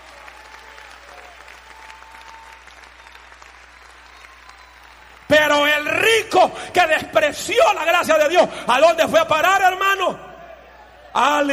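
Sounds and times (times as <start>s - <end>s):
audience applause: 0.0s - 6.4s
speech: 6.2s - 10.3s, 11.2s - 11.5s.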